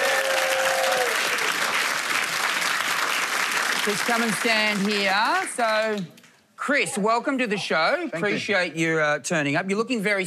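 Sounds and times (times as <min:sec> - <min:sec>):
audience applause welcoming a guest on stage: 0:00.0 - 0:06.0
speech: 0:03.9 - 0:10.2.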